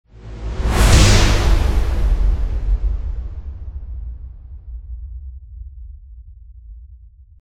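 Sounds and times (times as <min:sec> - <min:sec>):
transition sound: 0:00.1 - 0:04.7.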